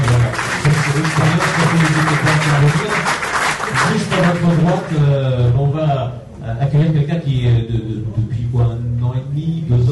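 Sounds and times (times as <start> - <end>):
crowd applause: 0.0 - 5.0
speech: 4.7 - 9.8.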